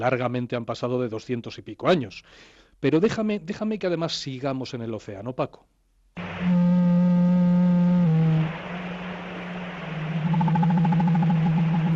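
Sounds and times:
speech: 0:00.0 - 0:05.8
blue whale clicking vocalization: 0:07.3 - 0:11.9.

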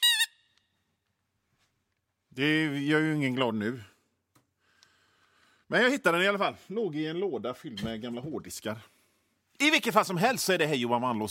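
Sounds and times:
squeaky toy horn honking: 0:00.0 - 0:00.6
speech: 0:02.4 - 0:03.9, 0:05.7 - 0:08.9, 0:09.6 - 0:11.2.

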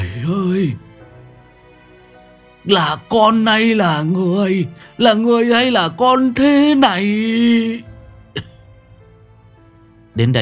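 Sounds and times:
speech: 0:00.2 - 0:00.9, 0:02.6 - 0:08.5, 0:10.2 - 0:10.4
old man coughing up blood: 0:08.3 - 0:08.8.

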